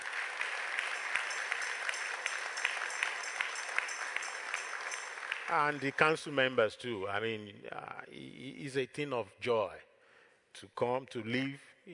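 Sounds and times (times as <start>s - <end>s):
audience clapping in sustained applause: 0.0s - 6.4s
speech: 5.5s - 9.9s, 10.6s - 11.9s.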